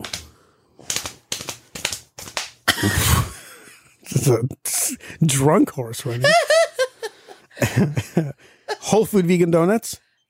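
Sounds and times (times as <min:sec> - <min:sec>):
hands slapping laps as a drum roll: 0:00.0 - 0:03.4
speech: 0:02.8 - 0:03.1, 0:04.2 - 0:06.6, 0:07.6 - 0:10.0
laughter: 0:06.0 - 0:09.3.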